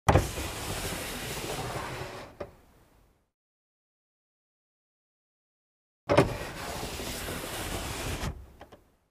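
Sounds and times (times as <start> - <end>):
car glass window lowered and raised manually: 0.1 - 2.5, 6.1 - 8.8.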